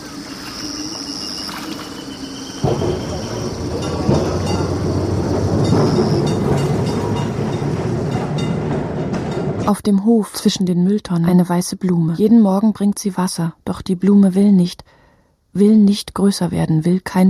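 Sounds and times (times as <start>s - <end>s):
thin high metallic whine: 0.0s - 8.6s
tram rumbling along its rails: 0.0s - 10.9s
tram wheel clacks: 2.6s - 9.8s
speech: 9.7s - 15.0s, 15.6s - 17.2s.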